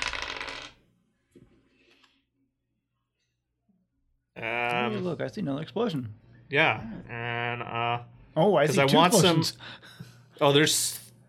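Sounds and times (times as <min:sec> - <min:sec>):
dice rattling and clattering: 0:00.0 - 0:00.8
speech: 0:04.4 - 0:11.0.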